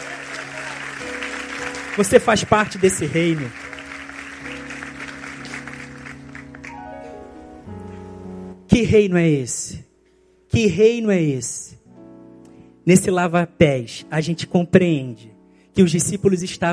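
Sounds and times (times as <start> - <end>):
audience applauding: 0.0 - 6.9
speech: 2.0 - 3.6, 8.9 - 9.9, 10.5 - 11.8, 12.8 - 16.7.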